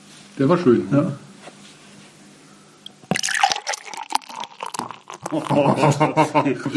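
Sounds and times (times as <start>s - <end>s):
speech: 0.4s - 1.3s, 5.3s - 6.7s
dark beer pouring from a bottle: 2.8s - 5.9s
laughter: 5.2s - 6.7s.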